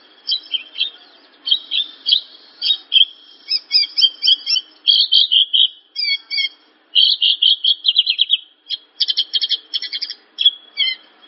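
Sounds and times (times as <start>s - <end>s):
bird singing: 0.0s - 11.2s.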